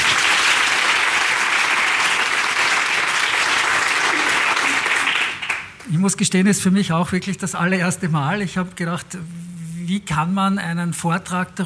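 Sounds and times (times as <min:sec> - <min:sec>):
audience applause: 0:00.0 - 0:05.8
speech: 0:06.0 - 0:11.6.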